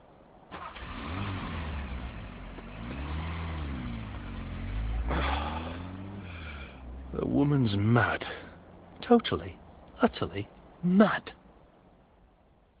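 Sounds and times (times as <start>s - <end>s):
car engine starting and revving as it pulls away on a snowy night: 0.5s - 9.0s
speech: 7.2s - 8.4s, 9.1s - 11.4s.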